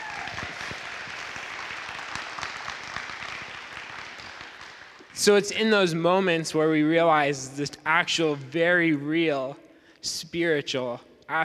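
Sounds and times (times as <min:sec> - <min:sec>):
audience applause: 0:00.0 - 0:05.1
speech: 0:05.2 - 0:11.4.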